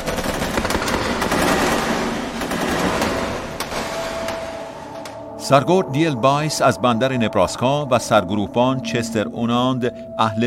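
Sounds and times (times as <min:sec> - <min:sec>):
sustained automatic gunfire through windows: 0:00.0 - 0:04.4
speech: 0:05.5 - 0:10.4.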